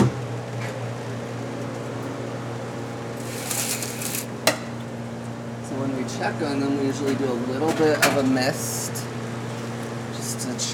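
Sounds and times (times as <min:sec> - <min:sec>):
double-door restaurant fridge humming: 0:00.0 - 0:10.7
speech: 0:06.1 - 0:09.0.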